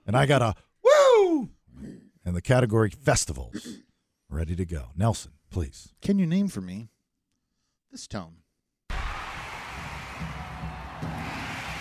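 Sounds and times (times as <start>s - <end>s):
speech: 0.1s - 0.7s, 2.3s - 7.0s, 7.9s - 8.4s
crowd cheering: 8.9s - 11.8s.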